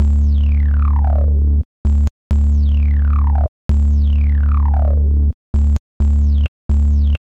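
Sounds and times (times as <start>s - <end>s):
mutating bass: 0.0s - 7.2s.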